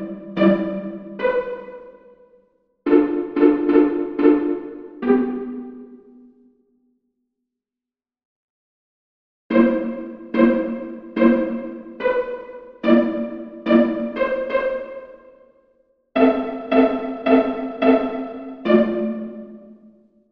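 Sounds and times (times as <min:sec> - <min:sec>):
mandolin: 0:02.9 - 0:05.6, 0:09.5 - 0:14.9, 0:16.2 - 0:19.4.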